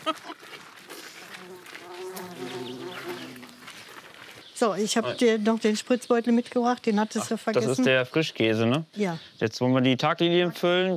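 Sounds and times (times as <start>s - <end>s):
bumblebees and bees buzzing in garden: 1.2s - 3.7s
speech: 4.6s - 10.9s.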